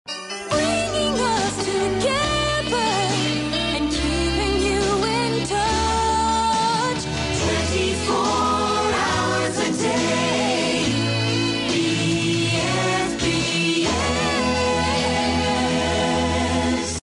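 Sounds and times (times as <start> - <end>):
jingle: 0.1 - 17.0.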